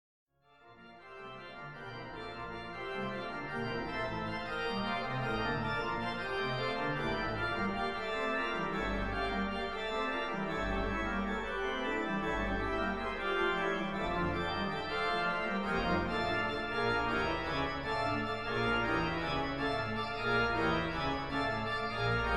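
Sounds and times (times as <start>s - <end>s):
organ: 0.5s - 22.3s.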